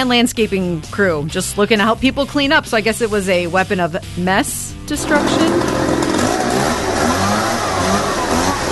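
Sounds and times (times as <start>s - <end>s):
speech: 0.0s - 5.9s
leaf blower engine running: 5.0s - 8.7s.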